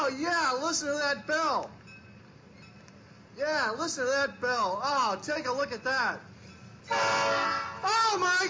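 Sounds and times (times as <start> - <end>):
speech: 0.1 - 1.8, 3.4 - 8.4
train horn blaring: 6.9 - 8.1.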